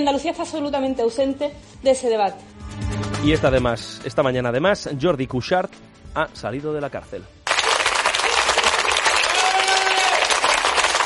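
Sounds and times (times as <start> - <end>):
speech: 0.0 - 7.4
factory employees applauding: 7.5 - 11.0.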